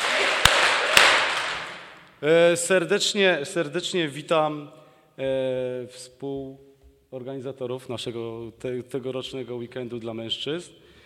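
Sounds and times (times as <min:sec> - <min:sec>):
clapping: 0:00.0 - 0:02.0
speech: 0:02.2 - 0:10.8.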